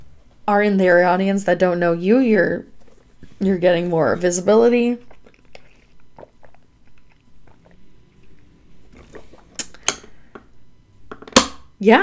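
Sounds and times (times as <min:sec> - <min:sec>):
speech: 0:00.5 - 0:02.7, 0:03.4 - 0:05.1, 0:11.8 - 0:12.0
plastic water bottle handled, clicking and crinkling: 0:02.7 - 0:09.8.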